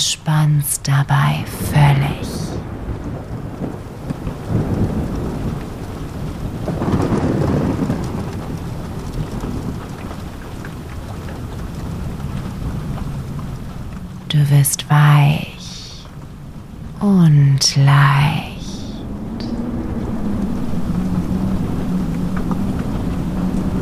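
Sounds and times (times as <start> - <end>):
speech: 0.2 - 2.4, 14.5 - 15.5, 17.0 - 18.5
thunderstorm: 1.6 - 14.3, 18.6 - 23.8.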